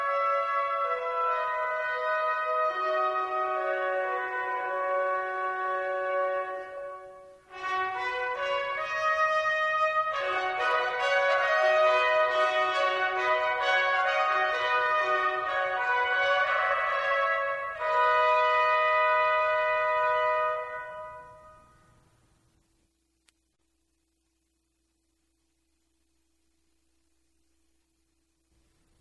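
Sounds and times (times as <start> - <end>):
trumpet duets: 0.0 - 22.0.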